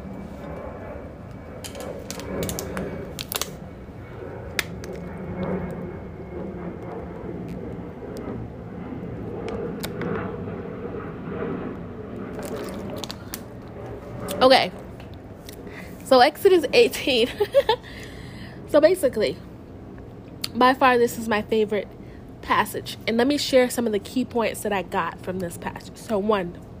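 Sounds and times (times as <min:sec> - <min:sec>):
low hum: 0:00.0 - 0:26.7
person gulping and swallowing water: 0:12.4 - 0:13.2
speech: 0:14.4 - 0:14.8, 0:16.1 - 0:18.0, 0:18.7 - 0:19.5, 0:20.6 - 0:26.7.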